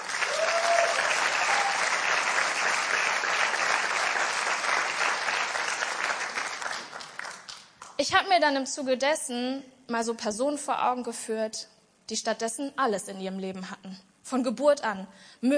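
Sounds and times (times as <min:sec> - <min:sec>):
audience clapping: 0:00.0 - 0:08.0
speech: 0:08.1 - 0:15.5.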